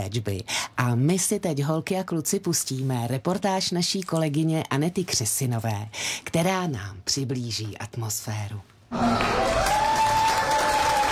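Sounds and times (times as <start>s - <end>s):
speech: 0.0s - 9.8s
applause at a ceremony in Prague's Holešovice: 9.0s - 11.0s.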